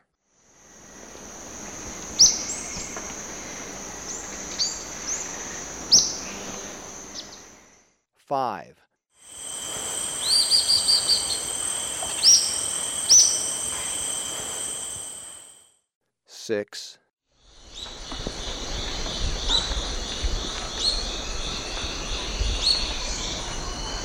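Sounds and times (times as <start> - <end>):
Olive-faced Flatbill calling in Ecuador: 0.7 - 7.7, 9.6 - 15.3, 17.7 - 24.0.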